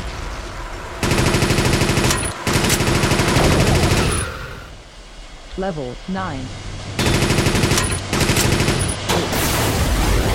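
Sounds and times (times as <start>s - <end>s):
rapid machine gun fire in a video game: 1.0s - 4.2s, 7.0s - 9.6s
speech: 5.6s - 6.6s.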